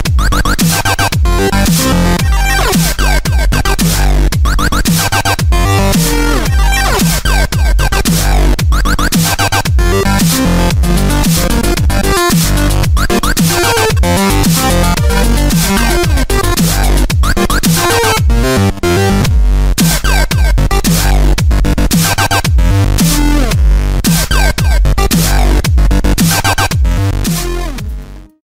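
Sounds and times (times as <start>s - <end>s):
hard electro dubstep music: 0.0s - 28.4s.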